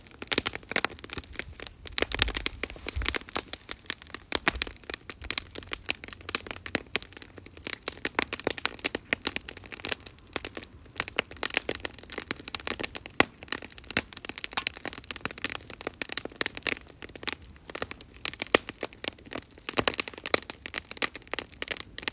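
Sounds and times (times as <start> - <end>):
campfire crackling: 0.0 - 22.1.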